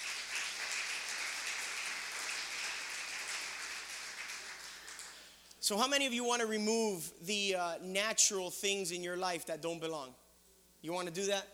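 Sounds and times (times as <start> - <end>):
audience clapping: 0.0 - 5.4
speech: 5.6 - 10.2, 10.8 - 11.5.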